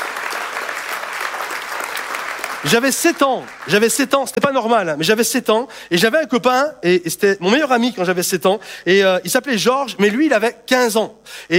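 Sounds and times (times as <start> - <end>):
audience applause: 0.0 - 4.0
speech: 2.6 - 11.5.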